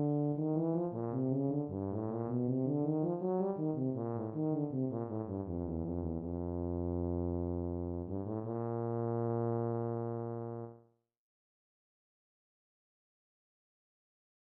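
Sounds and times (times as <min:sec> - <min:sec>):
tuba: 0:00.0 - 0:11.0.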